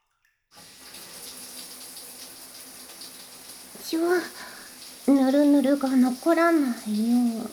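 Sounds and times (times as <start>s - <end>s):
shower water rinsing conditioner from hair: 0.5s - 7.5s
speech: 3.8s - 4.5s, 5.1s - 7.5s.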